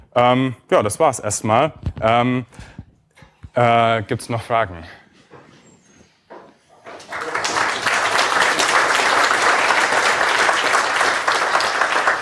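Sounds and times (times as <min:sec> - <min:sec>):
speech: 0:00.2 - 0:02.8, 0:03.6 - 0:05.0
audience applause after a talk: 0:06.8 - 0:12.2.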